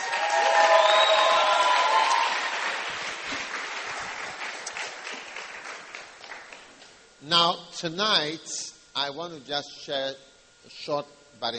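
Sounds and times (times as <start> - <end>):
crowd cheering and whooping: 0.0 - 4.4
crowd clapping: 0.0 - 6.9
speech: 7.3 - 11.5.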